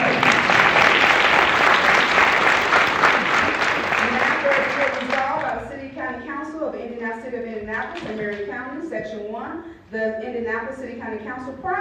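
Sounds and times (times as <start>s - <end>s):
audience clapping: 0.0s - 5.6s
speech: 10.0s - 11.7s.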